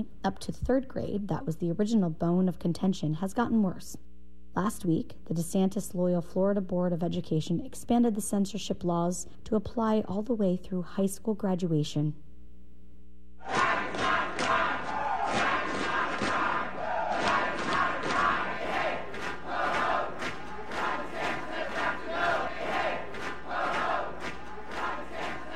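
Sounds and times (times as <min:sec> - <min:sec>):
speech: 0:00.0 - 0:12.2
crowd of drag queens and supporters chanting at the Florida Statehouse: 0:13.4 - 0:25.5
sharp regular beats: 0:13.5 - 0:25.5.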